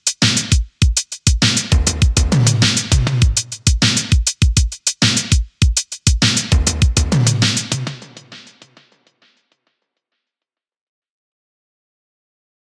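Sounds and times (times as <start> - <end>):
synthwave drums: 0.0 - 8.8.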